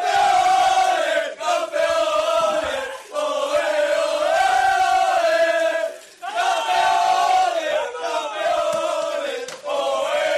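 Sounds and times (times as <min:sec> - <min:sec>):
crowd chanting: 0:00.0 - 0:10.3.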